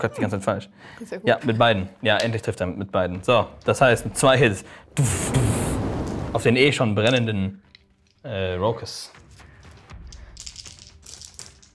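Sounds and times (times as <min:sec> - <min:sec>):
speech: 0:00.0 - 0:05.5, 0:06.3 - 0:09.2
dice being rolled: 0:09.7 - 0:11.7.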